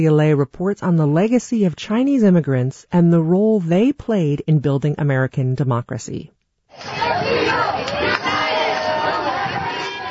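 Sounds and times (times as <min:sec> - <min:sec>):
speech: 0:00.0 - 0:08.4
supporters cheering outside the Supreme Court: 0:06.7 - 0:10.0.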